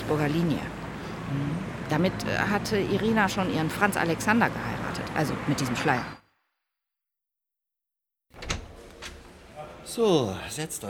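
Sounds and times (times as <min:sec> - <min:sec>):
speech: 0:00.1 - 0:06.2, 0:09.9 - 0:10.8
door opening and closing: 0:08.3 - 0:09.4.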